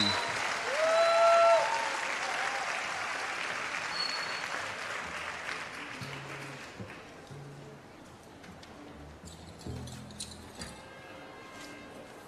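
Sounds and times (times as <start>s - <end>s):
theater audience applause: 0.0s - 7.2s
faint whistles: 3.9s - 4.7s.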